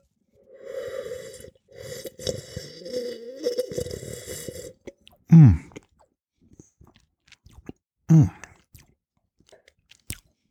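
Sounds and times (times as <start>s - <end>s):
person slurping wine while tasting: 0.4s - 6.0s
speech: 5.4s - 5.6s.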